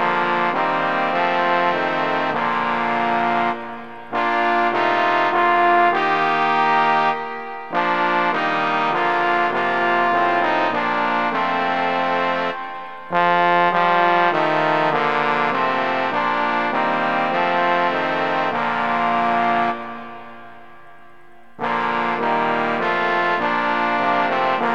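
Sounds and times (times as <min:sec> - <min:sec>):
trombone quartet playing a hymn in TTBB setting: 0:00.0 - 0:20.5, 0:21.6 - 0:24.7.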